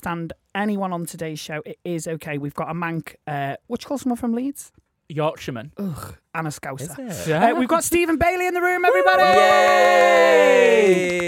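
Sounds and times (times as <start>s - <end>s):
speech: 0.0s - 11.2s
hands clapping: 10.2s - 11.2s.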